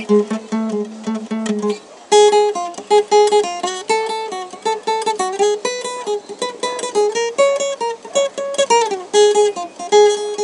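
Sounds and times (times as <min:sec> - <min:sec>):
complicated wild guitar solo: 0:00.0 - 0:10.4.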